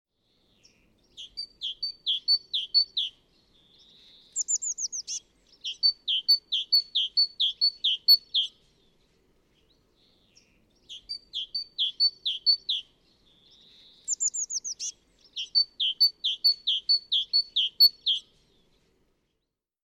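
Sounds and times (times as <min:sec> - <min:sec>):
great tit calling: 0:01.2 - 0:03.1, 0:04.4 - 0:08.5, 0:10.9 - 0:12.8, 0:13.9 - 0:18.2.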